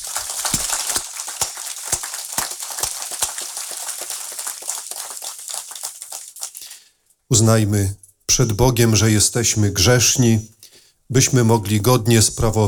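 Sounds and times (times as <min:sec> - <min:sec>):
applause: 0:00.0 - 0:06.8
speech: 0:07.3 - 0:12.6.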